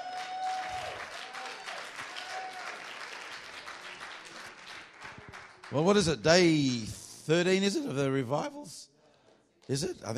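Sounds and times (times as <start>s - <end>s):
audience clapping: 0.0s - 6.9s
speech: 5.7s - 8.9s, 9.7s - 10.1s.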